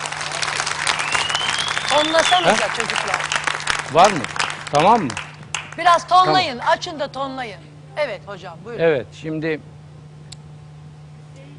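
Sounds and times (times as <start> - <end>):
audience applause: 0.0 - 6.0
speech: 2.0 - 5.2, 5.8 - 9.7.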